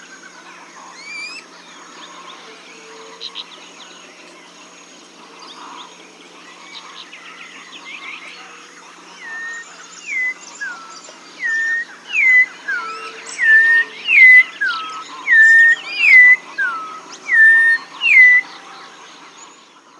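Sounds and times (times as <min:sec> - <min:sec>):
bird repeating down-slurred whistles: 0:09.2 - 0:18.5.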